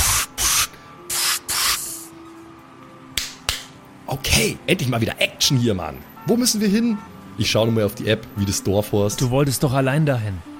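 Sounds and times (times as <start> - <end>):
vapour hissing from suit membranes: 0.0 - 2.1
speech: 4.1 - 10.5.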